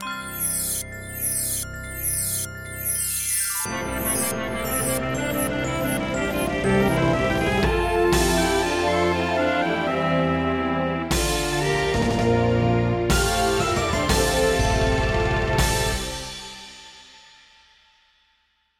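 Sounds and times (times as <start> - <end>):
fanfare: 3.7 - 16.6.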